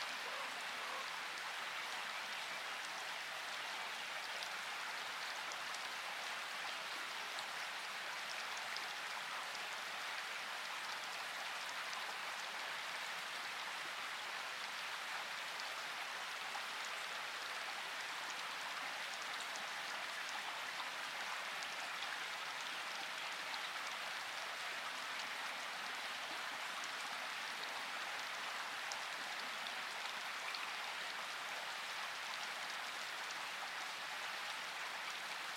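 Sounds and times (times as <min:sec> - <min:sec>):
birds: 0:00.0 - 0:01.1
rain in forest: 0:00.0 - 0:35.5.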